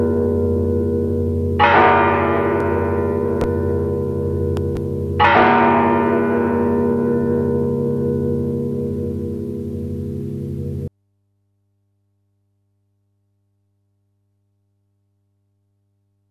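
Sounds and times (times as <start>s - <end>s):
bell: 0.0s - 10.9s.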